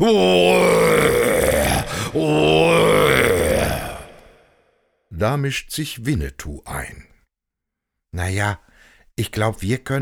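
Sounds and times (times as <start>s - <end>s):
speech: 0.0s - 1.0s, 2.1s - 2.8s, 5.2s - 7.1s, 8.1s - 10.0s
human imitating stag roaring: 0.0s - 4.6s.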